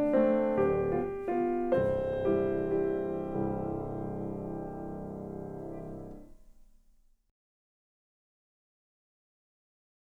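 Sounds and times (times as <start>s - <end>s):
instrumental music: 0.0s - 7.0s.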